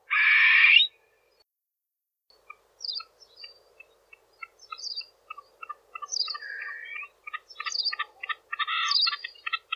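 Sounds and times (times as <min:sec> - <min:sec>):
Sardinian partridge calling: 0:02.4 - 0:09.7.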